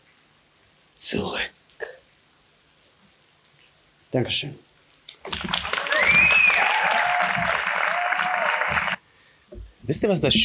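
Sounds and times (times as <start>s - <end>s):
speech: 1.0s - 1.6s, 4.1s - 4.6s, 9.9s - 10.4s
audience applause: 5.2s - 9.0s
audience cheers: 5.2s - 9.0s
whistles: 5.8s - 9.0s.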